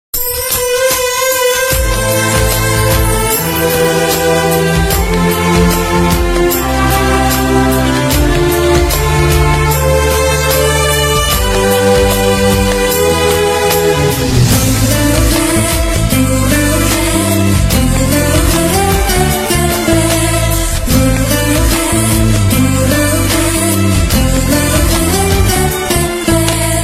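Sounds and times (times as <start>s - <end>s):
background music song: 0.2s - 26.8s.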